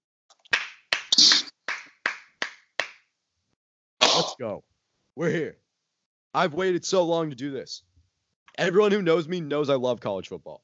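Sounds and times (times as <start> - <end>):
clapping: 0.4 - 3.0
speech: 4.2 - 5.6, 6.3 - 7.9, 8.5 - 10.6.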